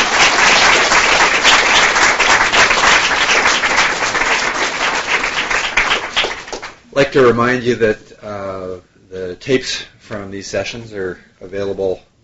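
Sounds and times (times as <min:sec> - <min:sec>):
round of applause: 0:00.0 - 0:06.8
speech: 0:07.1 - 0:12.1.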